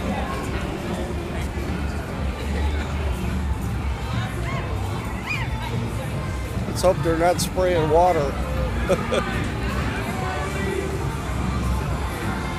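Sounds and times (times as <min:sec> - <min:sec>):
theme park parade audience crowd murmur: 0:00.0 - 0:12.5
children shouting: 0:04.2 - 0:06.0
speech: 0:06.8 - 0:09.6
laughter: 0:08.5 - 0:09.8.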